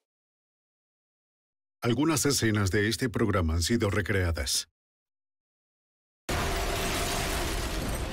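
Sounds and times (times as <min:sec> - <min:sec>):
speech: 0:01.8 - 0:04.8
series of explosions in New York City: 0:06.3 - 0:08.1.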